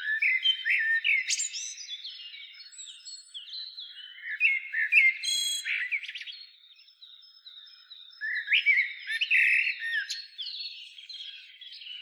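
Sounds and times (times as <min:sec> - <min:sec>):
Eurasian blackbird Turdus merula singing: 0:00.0 - 0:12.0.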